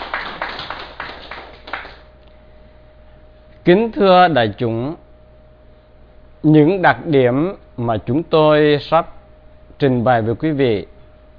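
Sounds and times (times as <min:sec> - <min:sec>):
audience scattered faint claps: 0:00.0 - 0:02.1
speech: 0:03.7 - 0:05.0, 0:06.4 - 0:09.2, 0:09.8 - 0:10.9.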